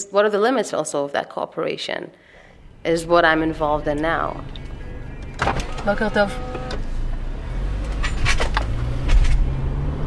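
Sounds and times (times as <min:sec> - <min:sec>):
speech: 0:00.0 - 0:04.6, 0:05.4 - 0:06.5
car road rumble driving from Tel Aviv to the West Bank: 0:02.3 - 0:10.0.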